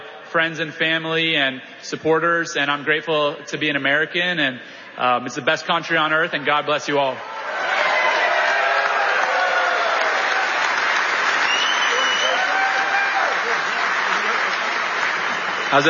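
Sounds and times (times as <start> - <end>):
speech: 0.4 - 7.3
crowd applauding and cheering: 7.2 - 15.8.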